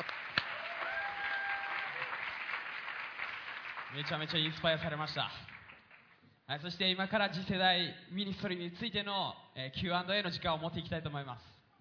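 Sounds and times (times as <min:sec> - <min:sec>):
audience applauding: 0:00.0 - 0:06.2
speech: 0:03.9 - 0:05.5, 0:06.5 - 0:11.6.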